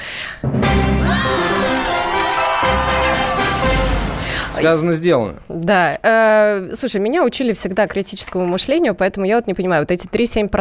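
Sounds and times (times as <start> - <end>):
applause sound effect: 0.6 - 4.5
speech: 4.6 - 10.5.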